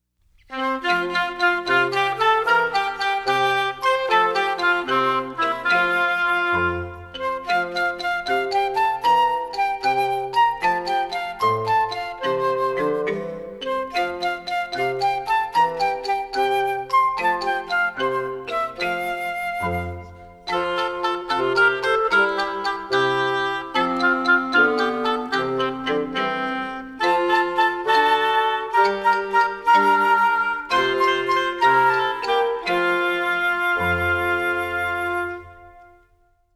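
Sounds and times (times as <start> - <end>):
instrumental music: 0.0 - 36.5.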